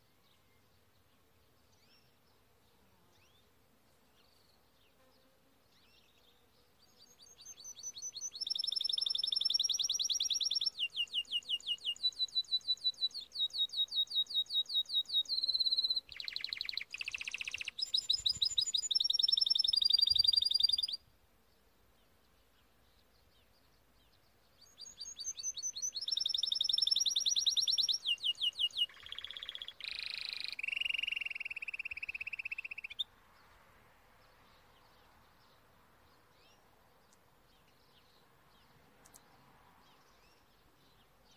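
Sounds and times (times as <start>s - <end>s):
Timbrado canary singing trills: 6.9s - 21.0s, 24.6s - 33.1s.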